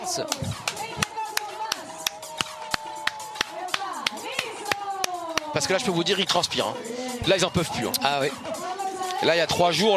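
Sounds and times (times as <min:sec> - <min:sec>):
speech: 0:00.1 - 0:00.8, 0:05.5 - 0:08.5, 0:09.2 - 0:09.9
audience clapping: 0:00.3 - 0:05.5.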